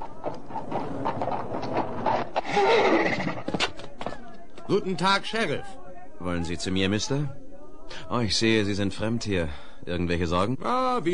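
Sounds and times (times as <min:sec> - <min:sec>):
horse hooves clattering on the market square of Buffalo: 0:00.0 - 0:04.7
horse whinnying: 0:00.8 - 0:03.8
speech: 0:02.6 - 0:03.2, 0:04.7 - 0:11.1.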